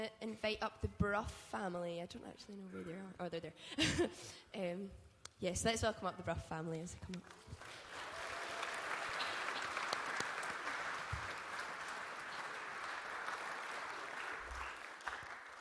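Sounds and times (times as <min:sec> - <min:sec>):
speech: 0:00.0 - 0:07.8
audience applause: 0:07.3 - 0:15.5.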